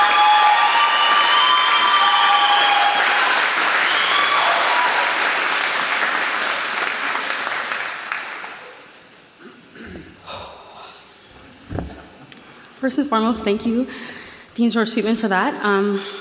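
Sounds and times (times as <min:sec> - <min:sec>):
audience applause welcoming the student speaker at a university graduation ceremony: 0:00.0 - 0:09.0
speech: 0:12.8 - 0:16.1.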